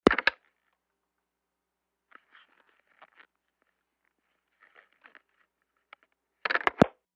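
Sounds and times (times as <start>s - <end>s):
telephone handling noise: 6.5s - 6.9s.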